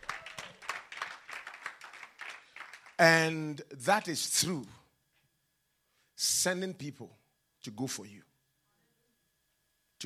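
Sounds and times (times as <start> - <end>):
audience clapping in rhythm: 0.0 - 3.3
speech: 3.0 - 4.8, 6.4 - 8.3.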